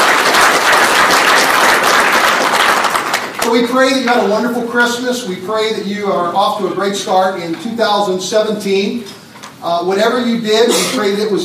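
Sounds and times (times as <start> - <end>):
church congregation applause at Grace Crossing Church welcoming newcomers: 0.0 - 4.1
speech: 3.5 - 11.4.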